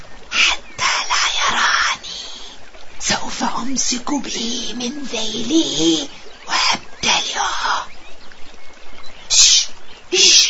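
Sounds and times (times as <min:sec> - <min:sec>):
sparrows chirping: 0:00.0 - 0:10.4
speech: 0:03.6 - 0:06.2.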